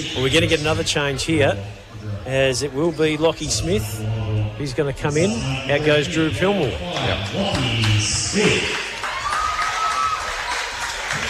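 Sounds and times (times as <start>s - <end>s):
murmuring voices: 0.0s - 9.0s
speech: 0.1s - 8.8s
polite round of applause from a crowd: 6.9s - 11.2s.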